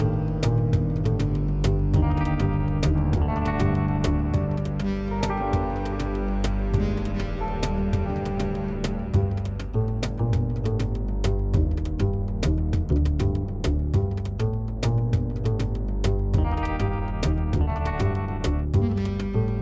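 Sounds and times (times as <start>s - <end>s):
ambient jazz: 0.0s - 19.6s.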